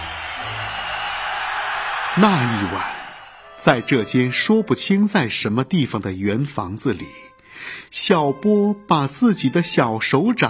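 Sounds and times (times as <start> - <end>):
applause: 0.0 - 3.6
crowd cheering: 0.0 - 4.4
speech: 2.2 - 3.0, 3.6 - 10.4.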